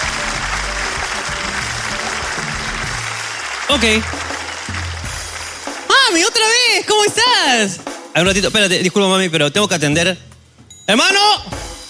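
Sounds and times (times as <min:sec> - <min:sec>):
audience applause: 0:00.0 - 0:06.5
speech: 0:03.7 - 0:04.2, 0:06.1 - 0:10.3, 0:10.9 - 0:11.5.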